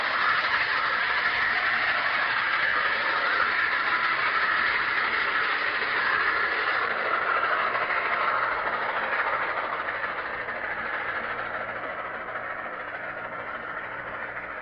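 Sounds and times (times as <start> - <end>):
steam locomotive accelerating on steel rails in Mineola: 0.0 - 14.6.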